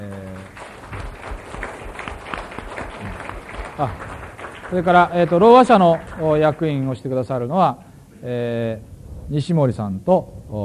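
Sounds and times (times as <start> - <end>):
applause at a community meeting: 0.0 - 7.4
speech: 3.8 - 4.1, 4.7 - 10.6.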